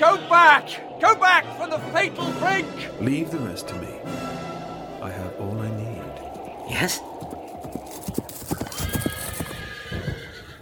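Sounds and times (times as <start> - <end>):
speech: 0.3 - 8.2
ridden horse hooves clip-clopping: 7.1 - 10.5
horse whinny: 8.6 - 10.5.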